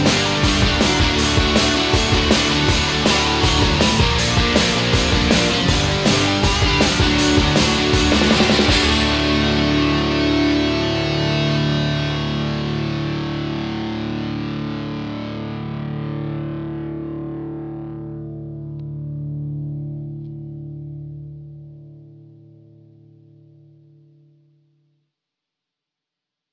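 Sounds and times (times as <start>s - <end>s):
cute instrumental rock music: 0.0s - 18.0s.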